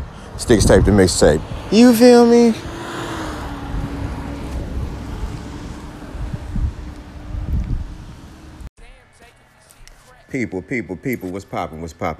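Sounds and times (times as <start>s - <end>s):
heavy wind buffeting a microphone: 0.0s - 1.7s, 2.6s - 8.6s
speech: 0.4s - 2.7s, 10.3s - 12.1s.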